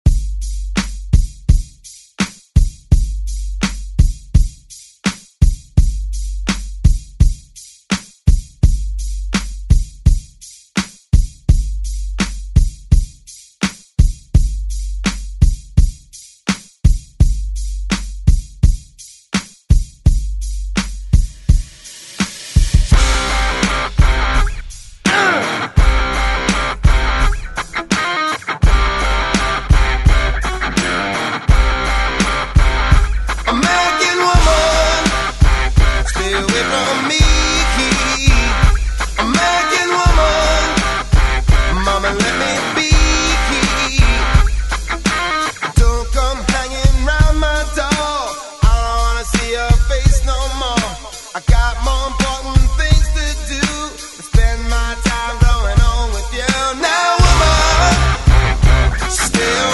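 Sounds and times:
90s drum beat: 0.0s - 59.7s.

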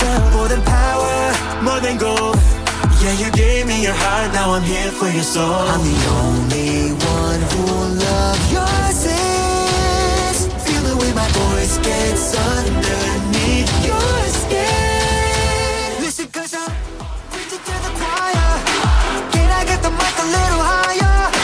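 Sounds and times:
pop music beat at 90 bpm: 0.0s - 21.4s.

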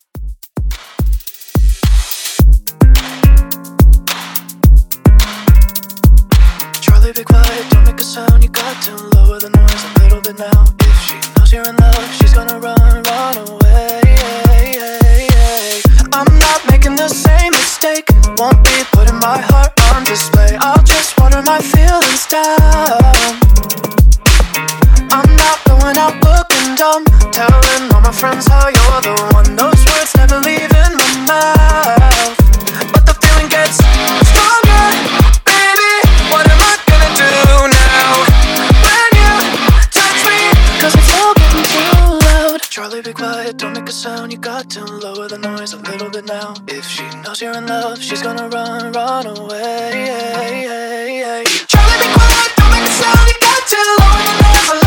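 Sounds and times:
Top 40 pop music at 107 BPM: 0.7s - 54.8s.

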